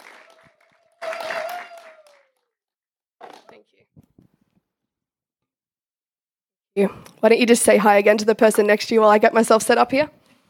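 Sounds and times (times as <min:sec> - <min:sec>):
church congregation clapping to welcome a speaker: 0:00.0 - 0:02.6, 0:03.2 - 0:03.8
speech: 0:03.6 - 0:04.3, 0:06.8 - 0:10.2.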